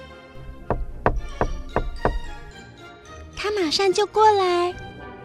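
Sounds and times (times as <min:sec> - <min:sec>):
light knocks on a wall: 0:00.5 - 0:02.5
speech: 0:03.4 - 0:04.8.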